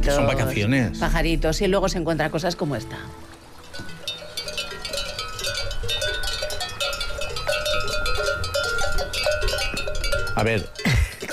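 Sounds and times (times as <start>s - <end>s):
speech: 0.0s - 3.9s, 10.4s - 11.0s
cowbells ringing on grazing livestock: 3.5s - 11.3s.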